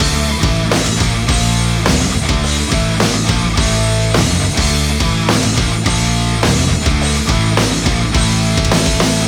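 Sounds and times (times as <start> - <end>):
metal music: 0.0 - 9.2.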